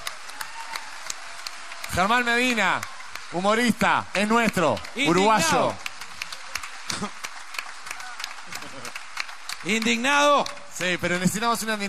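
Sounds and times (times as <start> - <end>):
crowd applause: 0.0 - 11.8
speech: 1.9 - 5.8, 6.9 - 7.2, 9.6 - 11.8
laughter: 8.5 - 9.1.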